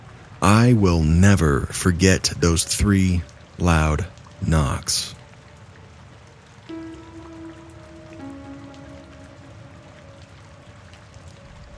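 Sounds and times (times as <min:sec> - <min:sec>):
rain pattering: 0:00.0 - 0:11.7
speech: 0:00.5 - 0:05.2
low humming tone: 0:06.7 - 0:11.7.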